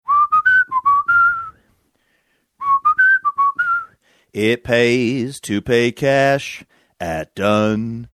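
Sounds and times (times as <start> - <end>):
person whistling: 0.0 - 1.7, 2.6 - 4.0
person singing: 4.4 - 8.1.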